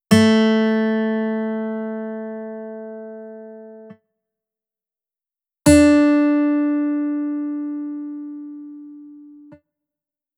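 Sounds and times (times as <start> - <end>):
guitar in D modal tuning: 0.1 - 3.9, 5.8 - 9.5.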